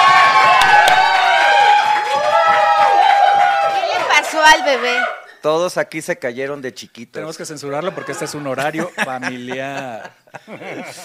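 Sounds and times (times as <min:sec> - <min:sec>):
audience applause: 0:00.0 - 0:05.2
speech: 0:04.4 - 0:11.0
laughter: 0:07.6 - 0:11.0.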